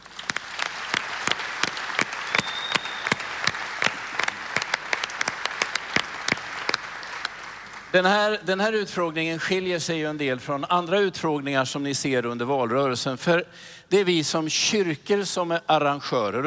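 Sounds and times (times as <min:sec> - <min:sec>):
audience applause: 0:00.0 - 0:08.0
speech: 0:07.9 - 0:16.4.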